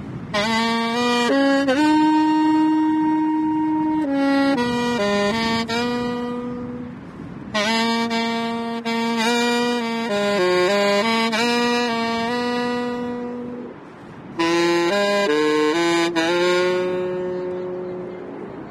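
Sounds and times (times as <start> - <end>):
saxophone: 0.0 - 18.6.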